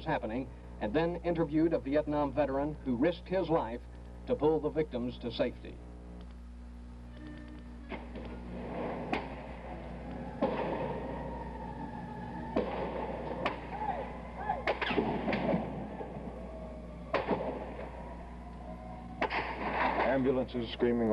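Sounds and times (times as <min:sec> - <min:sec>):
speech: 0:00.0 - 0:05.9, 0:20.4 - 0:21.1
gunshots fired at the tower during a gun battle: 0:07.9 - 0:11.1, 0:12.5 - 0:13.8, 0:14.6 - 0:16.3, 0:17.1 - 0:17.9, 0:19.2 - 0:20.3.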